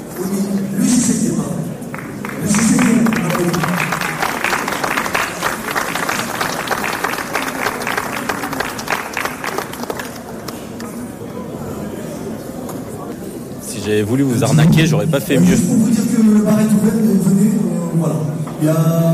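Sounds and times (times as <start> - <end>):
murmur of voices: 0.0 - 19.1
audience applauding: 1.9 - 10.8
speech: 14.0 - 19.1.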